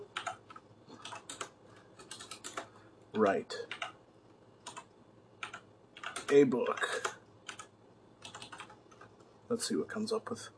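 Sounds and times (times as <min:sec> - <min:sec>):
one-handed typing on a computer keyboard: 0:00.0 - 0:02.7, 0:03.7 - 0:04.0, 0:04.6 - 0:09.2
speech: 0:03.2 - 0:03.7, 0:06.3 - 0:07.2, 0:09.5 - 0:10.5.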